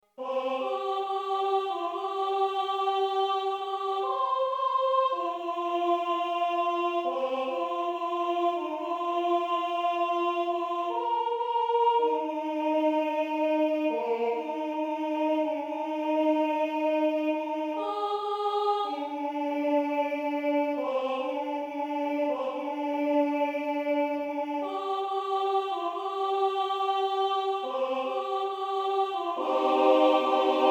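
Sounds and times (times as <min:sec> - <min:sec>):
Ukrainian alleluia: 0:00.1 - 0:30.6.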